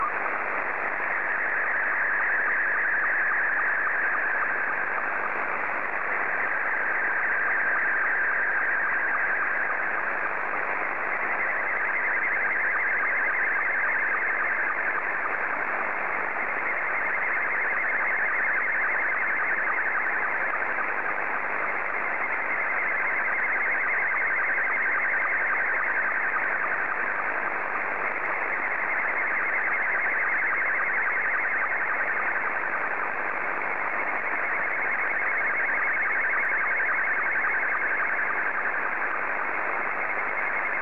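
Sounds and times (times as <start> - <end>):
Scottie 2 slow-scan television signal: 0.0 - 40.8.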